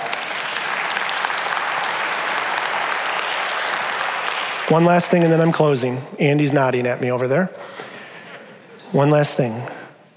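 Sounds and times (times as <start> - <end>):
audience clapping: 0.0 - 6.0
speech: 4.7 - 7.7, 8.9 - 9.8.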